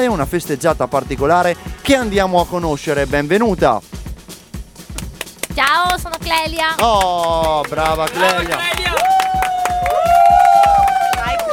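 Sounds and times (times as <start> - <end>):
speech: 0.0 - 4.0, 5.6 - 9.1
crowd of friends clapping for a guest at a show: 4.9 - 11.5
sustained loud cheering voice: 8.2 - 11.5.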